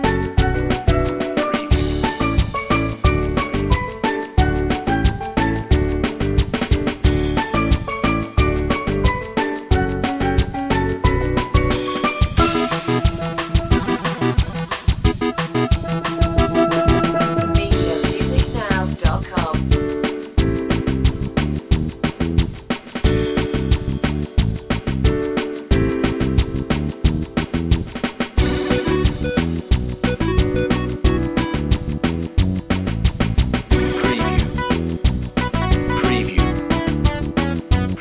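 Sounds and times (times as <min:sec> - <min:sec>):
retro video game bubbles music: 0:00.0 - 0:27.8, 0:28.4 - 0:37.9.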